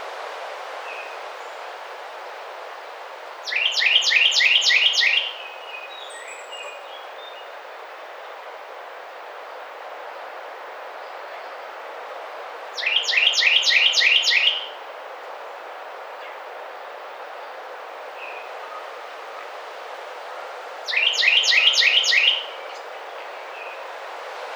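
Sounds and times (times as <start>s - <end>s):
Carolina wren singing: 3.5s - 5.4s, 12.8s - 14.7s, 20.9s - 23.8s.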